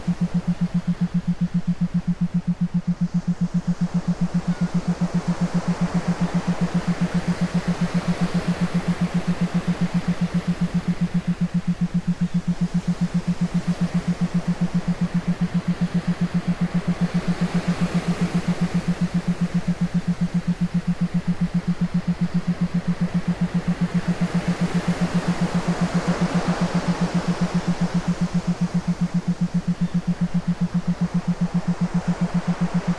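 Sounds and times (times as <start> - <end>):
isochronic waves: 0.0 - 32.9
theta binaural beats: 0.0 - 32.9.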